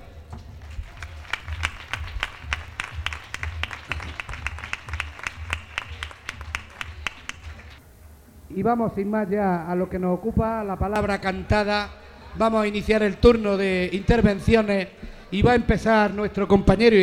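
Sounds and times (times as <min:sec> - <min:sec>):
audience applause: 0:00.4 - 0:07.8
speech: 0:08.6 - 0:17.0.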